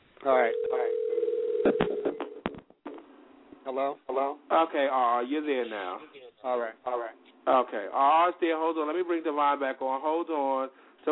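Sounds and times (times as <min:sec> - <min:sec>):
speech: 0:00.2 - 0:01.0, 0:03.7 - 0:11.1
telephone ringing on call-back line: 0:00.3 - 0:02.4.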